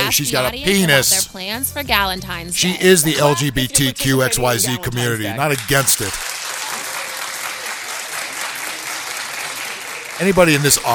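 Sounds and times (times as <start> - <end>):
speech: 0.1 - 6.4, 10.2 - 10.9
audience clapping: 4.4 - 10.9.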